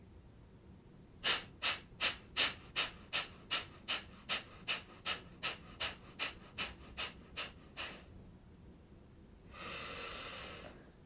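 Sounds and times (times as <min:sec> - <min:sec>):
deep breathing exercise, inhaling and exhaling: 0:01.2 - 0:08.2, 0:09.5 - 0:11.0.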